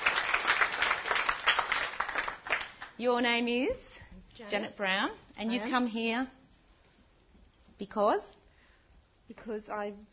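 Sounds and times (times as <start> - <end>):
game show audience applause for a winner: 0.0 - 3.0
speech: 3.0 - 6.4, 7.8 - 8.4, 9.3 - 10.1.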